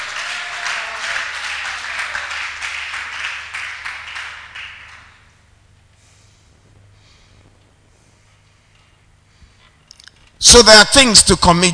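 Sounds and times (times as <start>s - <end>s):
audience shouting: 0.0s - 2.4s
audience clapping: 0.0s - 5.3s
speech: 10.5s - 11.7s.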